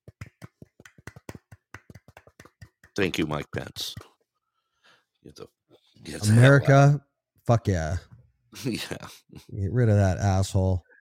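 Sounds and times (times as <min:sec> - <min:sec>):
quiet golf clap: 0:00.0 - 0:03.2
speech: 0:03.0 - 0:04.1, 0:05.2 - 0:10.9.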